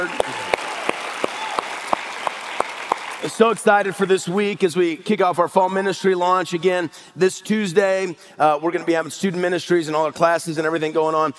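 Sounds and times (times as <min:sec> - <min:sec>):
rhythmic sharp claps: 0:00.0 - 0:03.8
church congregation applauding: 0:00.0 - 0:04.4
speech: 0:03.2 - 0:11.3.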